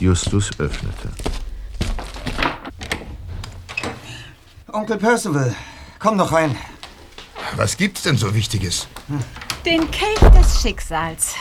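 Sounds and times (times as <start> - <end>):
speech: 0.0 - 1.4, 4.7 - 6.8, 7.5 - 11.3
dull heavy knocks on a door: 9.8 - 11.1.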